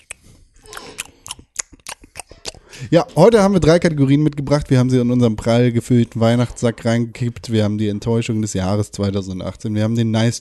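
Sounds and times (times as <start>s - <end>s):
chewing on a rum ball: 0.0s - 2.9s
mouth clicks: 0.0s - 3.0s
speech: 2.8s - 10.3s.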